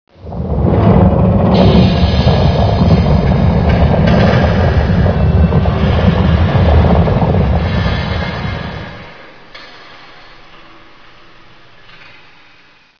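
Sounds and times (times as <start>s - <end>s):
earthquake rumble: 0.1s - 9.6s.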